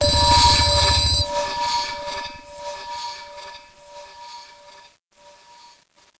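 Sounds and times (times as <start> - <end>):
electronic sounds: 0.0 - 2.2.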